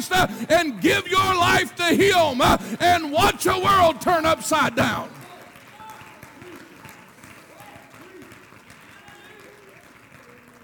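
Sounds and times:
speech: 0.0s - 5.2s
audience clapping: 3.2s - 10.6s.

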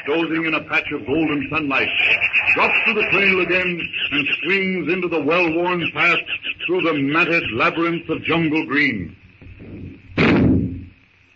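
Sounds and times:
laughter: 0.0s - 8.1s
faint steady hum: 0.0s - 11.3s
speech: 0.1s - 9.2s
single gunshot in the jungle: 10.2s - 10.9s.

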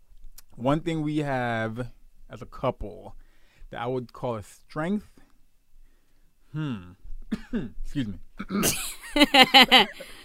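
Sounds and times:
speech: 0.6s - 5.2s, 6.5s - 10.2s
person coughing: 7.3s - 7.8s, 8.4s - 9.0s
laughter: 8.6s - 10.2s.

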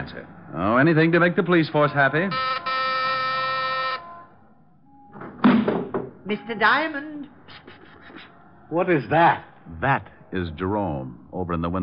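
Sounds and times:
speech: 0.0s - 2.7s, 6.3s - 7.6s, 8.7s - 11.8s
doorbell buzzer: 2.3s - 4.2s.

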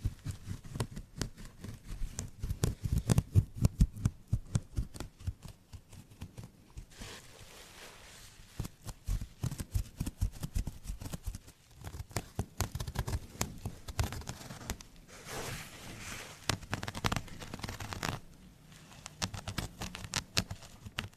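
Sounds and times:
scratching strokes on carpet, wood and plastic surfaces: 0.0s - 21.1s.

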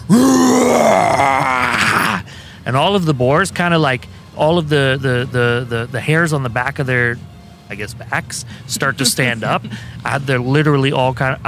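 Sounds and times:
person imitating a roar: 0.0s - 2.2s
speech: 0.1s - 1.4s, 2.7s - 11.4s.

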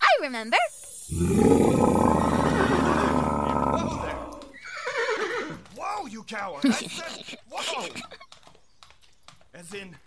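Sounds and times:
speech: 0.2s - 2.1s, 6.2s - 8.2s, 9.6s - 10.0s
voice imitating the roar of a tyrant lizard: 1.1s - 4.6s
laughter: 2.3s - 4.2s, 6.5s - 8.3s.

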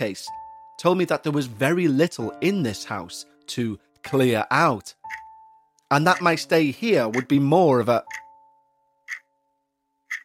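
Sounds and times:
speech: 0.0s - 5.0s, 5.9s - 8.2s
loud clock ticking: 6.1s - 6.3s, 7.1s - 7.3s, 8.1s - 8.3s, 9.1s - 9.3s, 10.1s - 10.2s.

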